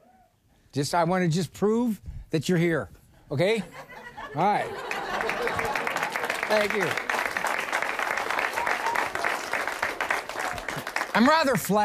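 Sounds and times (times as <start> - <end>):
speech: 0.7 - 4.9, 6.5 - 7.1, 11.2 - 11.8
laughter: 3.6 - 7.4
audience applause: 4.7 - 11.8.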